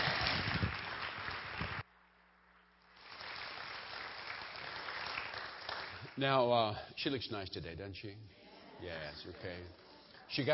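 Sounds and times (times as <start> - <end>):
crowd applause after a testimony: 0.0 - 1.8, 2.9 - 6.2
speech: 6.2 - 10.5.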